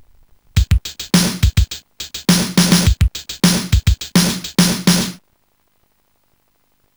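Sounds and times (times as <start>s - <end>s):
drum: 0.6s - 5.2s.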